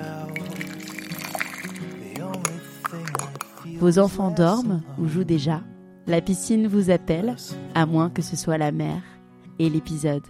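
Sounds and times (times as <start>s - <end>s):
morning coffee pouring: 0.0s - 3.6s
soft music: 0.0s - 10.2s
speech: 3.6s - 10.2s.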